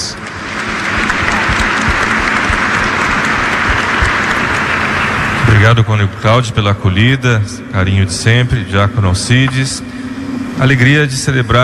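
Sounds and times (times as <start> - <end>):
audience applause: 0.0 - 6.4
speech: 5.6 - 10.0, 10.6 - 11.6.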